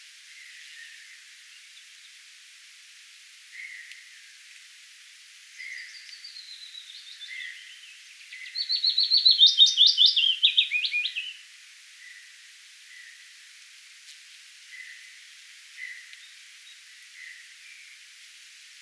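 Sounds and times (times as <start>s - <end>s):
willow warbler singing: 5.6s - 11.4s.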